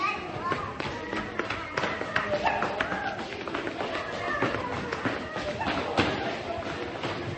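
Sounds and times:
people talking: 0.0 - 7.3
child's running footsteps in a hospital: 0.1 - 7.3.

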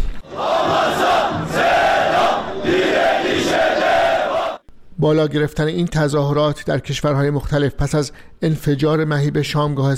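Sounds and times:
crowd of protesters chanting in unison: 0.2 - 4.6
speech: 5.0 - 9.9.

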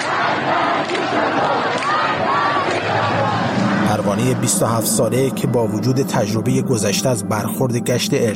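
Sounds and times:
dense crowd shouting together: 0.0 - 4.7
protest crowd chanting: 0.0 - 6.4
speech: 4.2 - 8.3.

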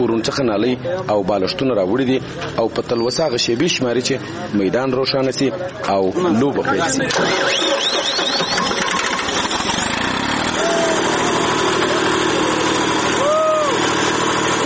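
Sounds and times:
speech: 0.1 - 8.5
generator powering the lights over a playing field: 7.0 - 14.6.

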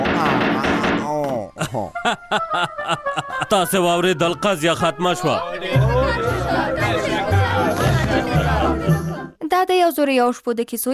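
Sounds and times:
gavel struck on a judge's court table: 0.0 - 1.4
laughter: 1.4 - 9.1
speech: 1.7 - 7.1, 9.7 - 10.9.

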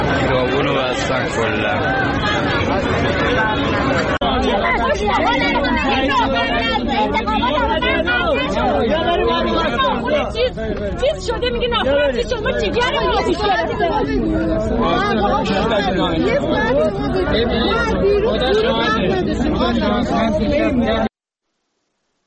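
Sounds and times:
street protest crowd over water and power cuts: 0.0 - 21.1
speech: 1.2 - 2.2, 10.2 - 21.1.

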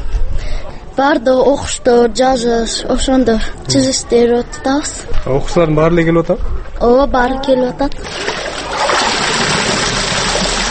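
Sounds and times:
speech: 1.0 - 8.4
elderly woman hand-washing laundry in water: 8.0 - 10.6.

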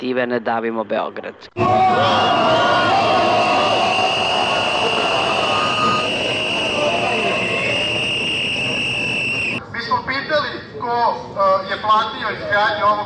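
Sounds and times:
speech: 0.0 - 3.2, 10.9 - 13.0
protest crowd roaring: 1.6 - 9.6
sustained high whistle-like tone: 3.2 - 9.6.

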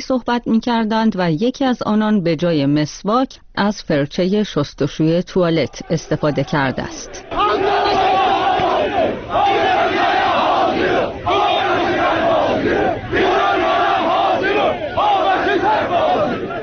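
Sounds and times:
speech: 0.0 - 7.9
protest crowd chanting at a rally in Tabriz: 5.6 - 16.6.

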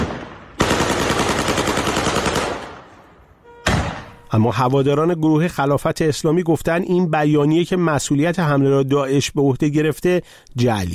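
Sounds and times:
gunshots fired into the air: 0.0 - 4.2
speech: 4.3 - 10.9.

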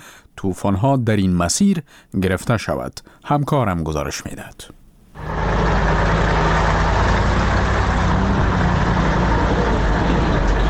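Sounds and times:
speech: 0.4 - 5.3
passenger and cargo vehicle convoy traffic in the Salang valley: 5.2 - 10.6.

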